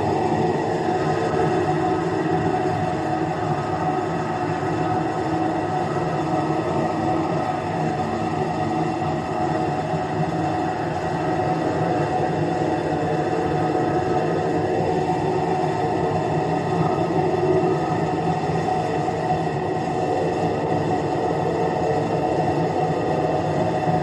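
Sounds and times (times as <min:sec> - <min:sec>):
tonal ambient drone: 0:00.0 - 0:24.0.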